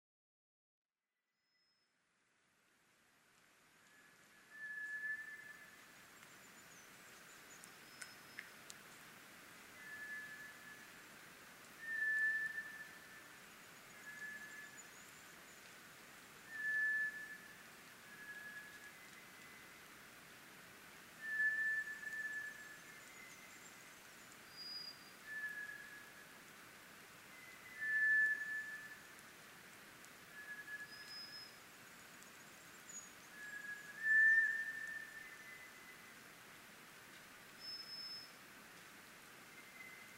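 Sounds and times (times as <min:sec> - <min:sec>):
faint chirps from other birds: 0:01.4 - 0:02.0, 0:03.8 - 0:09.1, 0:09.7 - 0:11.1, 0:11.8 - 0:19.9, 0:21.2 - 0:26.4, 0:27.2 - 0:29.2, 0:30.3 - 0:36.2, 0:37.5 - 0:38.4, 0:39.4 - 0:40.1
background hiss: 0:01.6 - 0:40.1
White's thrush whistling song: 0:03.9 - 0:05.8, 0:09.8 - 0:11.0, 0:11.8 - 0:15.1, 0:16.5 - 0:19.8, 0:21.2 - 0:23.5, 0:24.6 - 0:26.3, 0:27.3 - 0:29.1, 0:30.3 - 0:31.6, 0:33.3 - 0:36.1.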